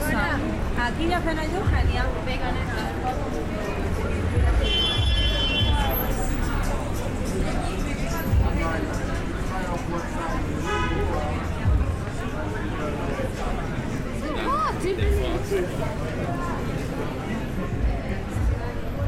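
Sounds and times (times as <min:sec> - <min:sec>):
crowd chatter on a busy Soho street at night: 0:00.0 - 0:19.0.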